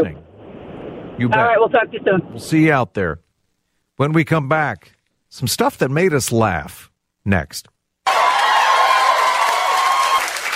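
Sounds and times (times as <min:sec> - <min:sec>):
speech: 0:00.0 - 0:00.2, 0:01.2 - 0:03.2, 0:04.0 - 0:07.8
crowd applauding and cheering: 0:08.0 - 0:10.5.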